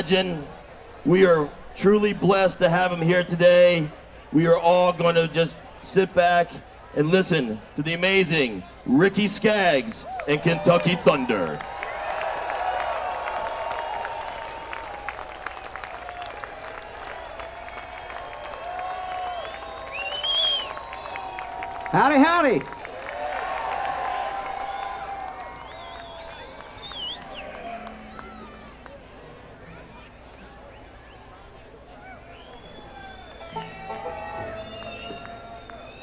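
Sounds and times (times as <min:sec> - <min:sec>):
speech: 0:00.0 - 0:11.8, 0:22.0 - 0:22.8
audience cheering: 0:00.0 - 0:36.0
audience applauding: 0:09.5 - 0:36.0.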